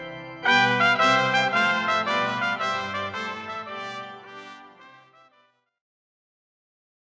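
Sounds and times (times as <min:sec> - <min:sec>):
trumpet tune played on organ: 0:00.5 - 0:05.5.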